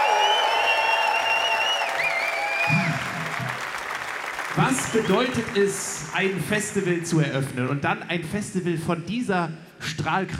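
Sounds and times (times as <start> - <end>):
festival crowd at the Rudolstadt Open Air applauding and cheering: 0.0 - 7.0
speech: 4.6 - 10.3.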